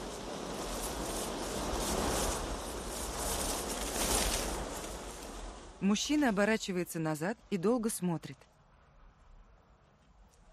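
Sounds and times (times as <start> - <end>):
sudden gust of wind over a path through tall grass in a film: 0.0 - 6.4
speech: 5.8 - 8.5.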